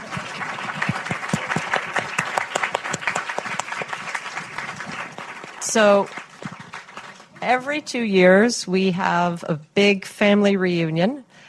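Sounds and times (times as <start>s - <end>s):
crowd applauding: 0.0s - 7.5s
speech: 5.7s - 6.2s, 7.4s - 11.2s.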